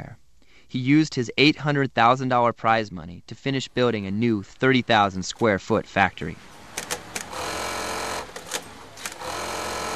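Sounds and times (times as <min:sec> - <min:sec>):
speech: 0:00.0 - 0:06.6
sewing machines running in a bra factory: 0:06.6 - 0:09.9.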